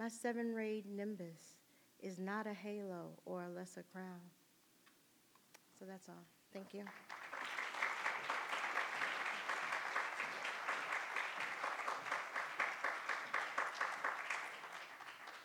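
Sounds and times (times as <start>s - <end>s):
speech: 0.0s - 4.4s, 5.8s - 7.2s
audience applause: 6.8s - 15.4s.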